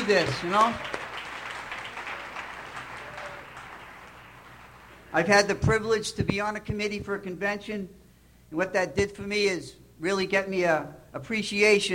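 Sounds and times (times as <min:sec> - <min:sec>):
audience applause: 0:00.0 - 0:05.3
speech: 0:00.1 - 0:01.0, 0:05.1 - 0:11.9.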